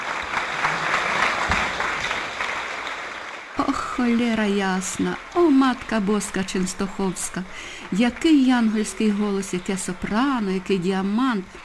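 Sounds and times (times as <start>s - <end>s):
friendly applause: 0.0s - 11.6s
speech: 3.7s - 11.6s.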